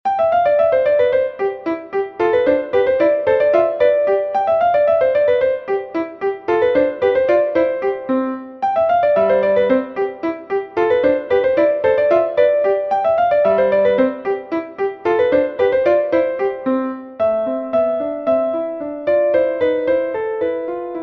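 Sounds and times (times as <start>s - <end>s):
etude piece: 0.1s - 21.0s.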